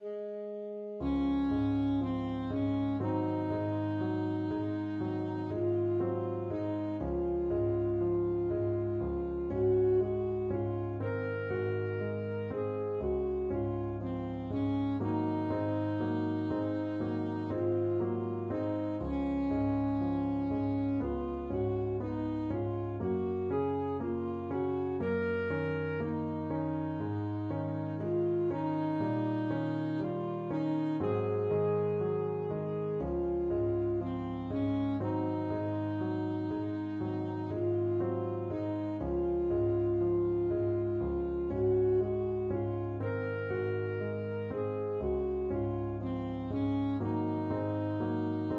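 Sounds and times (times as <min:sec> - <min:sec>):
alto saxophone etude: 0:00.0 - 0:48.5.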